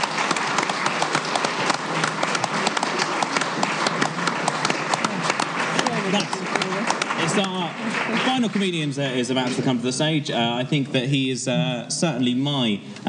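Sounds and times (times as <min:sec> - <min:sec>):
crowd applause: 0:00.0 - 0:10.0
speech: 0:08.5 - 0:13.0.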